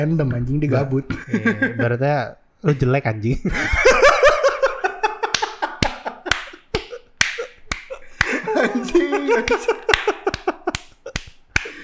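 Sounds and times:
speech: 0.0 - 4.0
laughter: 1.1 - 2.0, 3.4 - 11.8
sharp hand claps: 5.3 - 8.5, 9.4 - 11.8.

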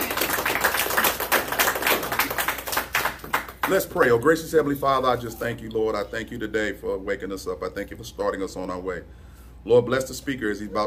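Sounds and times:
crowd clapping: 0.0 - 4.0
speech: 3.7 - 10.8.

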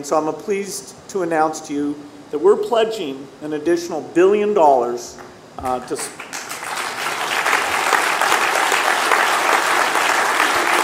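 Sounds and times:
speech: 0.0 - 6.2
applause starting with a single clap: 6.1 - 10.8.

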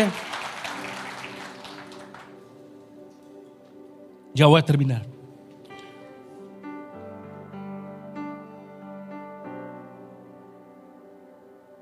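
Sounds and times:
speech: 0.0 - 0.3, 4.4 - 5.1
audience applause: 0.0 - 2.7.

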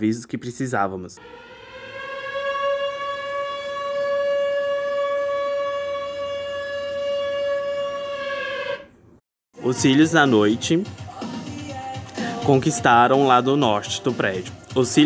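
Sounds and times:
speech: 0.0 - 1.6, 9.6 - 11.0, 12.5 - 15.0
alarm siren: 1.2 - 9.0.

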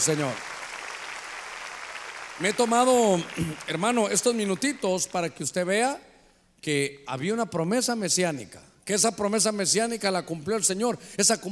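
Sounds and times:
speech: 0.0 - 0.5, 2.4 - 11.5
crowd applause: 0.0 - 4.8.

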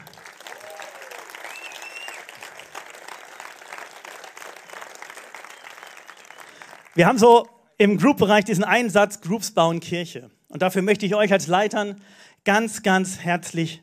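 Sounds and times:
audience applause: 0.0 - 7.1
speech: 7.0 - 13.8.

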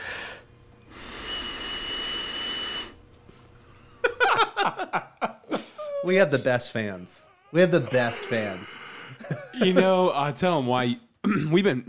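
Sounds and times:
nose whistle: 1.0 - 3.0
laughter: 3.8 - 6.1, 7.9 - 10.1
speech: 6.0 - 11.8.

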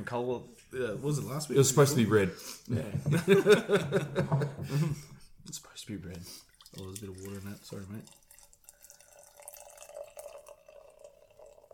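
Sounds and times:
speech: 0.0 - 8.2
laughter: 2.7 - 5.2
beer pouring: 6.0 - 11.7.

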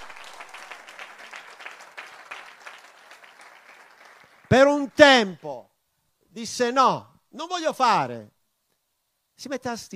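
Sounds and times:
audience applause: 0.0 - 4.5
speech: 4.5 - 5.7, 6.3 - 8.4, 9.4 - 9.9.

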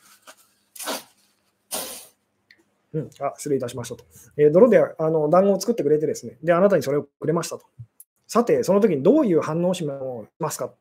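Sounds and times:
person blowing their nose: 0.0 - 2.2
speech: 2.9 - 10.7.

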